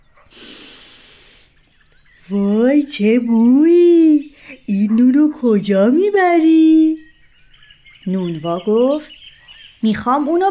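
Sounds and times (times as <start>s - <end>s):
voice imitating an otter taking a deep sniff in a children's story: 0.3s - 1.6s
speech: 2.3s - 7.0s, 8.0s - 9.2s, 9.8s - 10.5s.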